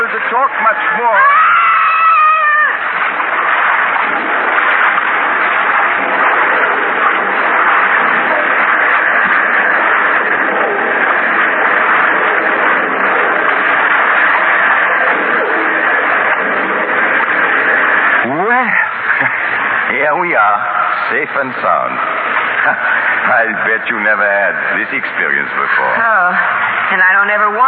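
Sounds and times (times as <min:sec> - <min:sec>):
waterfall roaring: 0:00.0 - 0:27.6
speech: 0:00.4 - 0:01.4, 0:21.2 - 0:22.0, 0:22.6 - 0:27.6
wavering tonal cry: 0:01.2 - 0:02.9.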